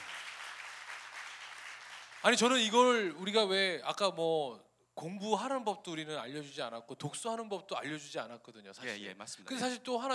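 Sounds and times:
audience applause: 0.0s - 2.4s
speech: 2.2s - 10.1s.

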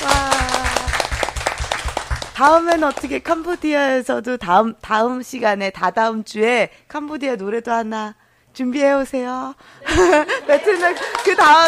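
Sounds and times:
audience clapping: 0.0s - 3.5s, 10.5s - 11.6s
speech: 2.4s - 11.6s
laughter: 9.8s - 11.4s.

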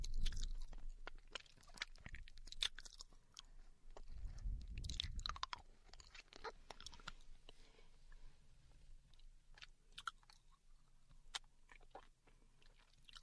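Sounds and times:
girlfriend eating candy: 0.0s - 7.3s, 9.6s - 10.7s, 11.3s - 13.2s.

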